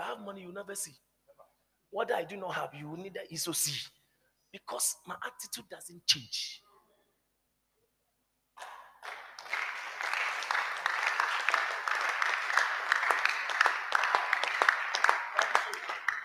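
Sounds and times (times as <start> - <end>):
speech: 0.2 - 1.1, 1.9 - 6.6
crowd applauding: 8.6 - 16.2.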